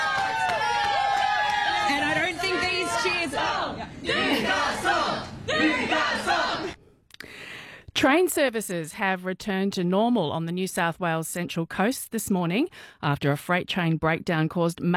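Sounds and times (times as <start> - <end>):
crowd of fans cheering: 0.0 - 6.8
speech: 8.0 - 14.9.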